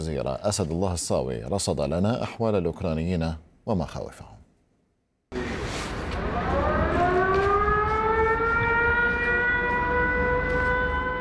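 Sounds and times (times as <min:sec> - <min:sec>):
speech: 0:00.0 - 0:04.4
air raid warning siren: 0:05.3 - 0:11.2.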